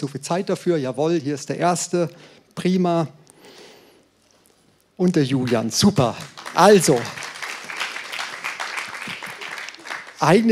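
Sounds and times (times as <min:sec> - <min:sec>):
speech: 0:00.0 - 0:03.6, 0:05.0 - 0:07.3, 0:10.2 - 0:10.5
audience applause for two volunteers: 0:05.5 - 0:10.5.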